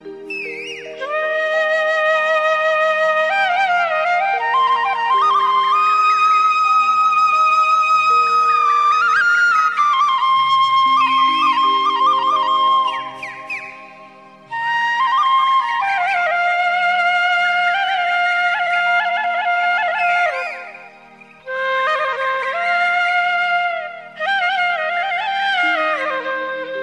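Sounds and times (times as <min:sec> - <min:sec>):
Krishna flute ringtone: 0:00.0 - 0:26.8.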